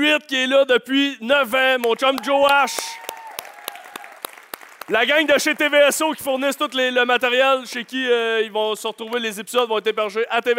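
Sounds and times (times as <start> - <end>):
speech: 0.0 - 3.0, 4.9 - 10.5
audience applause: 2.1 - 8.5.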